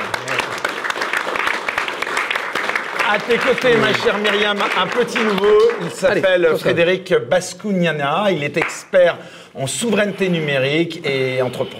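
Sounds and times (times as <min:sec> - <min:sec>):
audience applause: 0:00.0 - 0:06.2
speech: 0:03.1 - 0:11.7.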